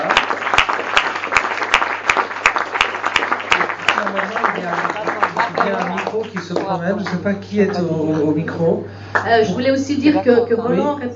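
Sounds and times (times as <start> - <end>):
audience applause: 0.0 - 7.9
speech: 6.4 - 11.1.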